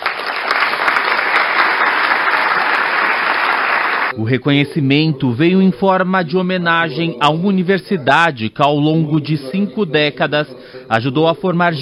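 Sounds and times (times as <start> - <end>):
applause in a packed assembly hall: 0.0 - 4.1
speech: 4.3 - 11.8.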